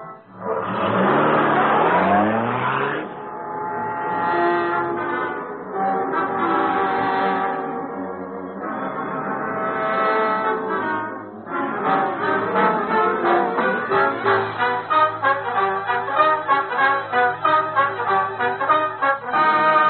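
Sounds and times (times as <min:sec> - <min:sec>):
taxi engine revving as the car drives off: 0:00.2 - 0:19.8.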